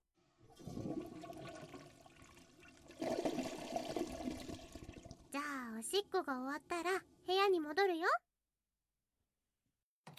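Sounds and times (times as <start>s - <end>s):
toilet flush: 0.4s - 5.3s
speech: 5.8s - 8.2s.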